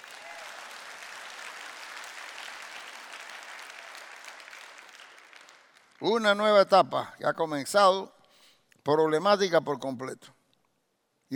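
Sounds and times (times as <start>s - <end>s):
audience applause: 0.0s - 5.9s
speech: 6.0s - 8.2s, 8.8s - 10.4s.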